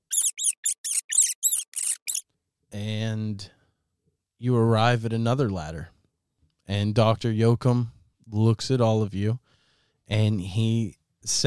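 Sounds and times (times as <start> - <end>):
rat squeaking in sewer: 0.0 - 2.2
speech: 2.7 - 3.6, 4.4 - 6.0, 6.7 - 9.4, 10.1 - 11.4.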